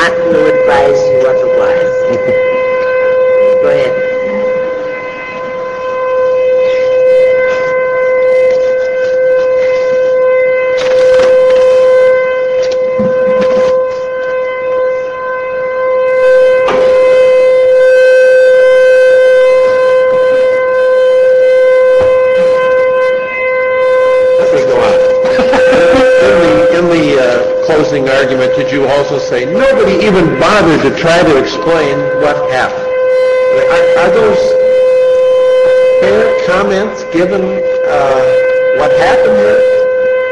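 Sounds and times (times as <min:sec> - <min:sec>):
civil defense siren during its weekly test: 0:00.0 - 0:40.3
laughter: 0:24.6 - 0:27.5.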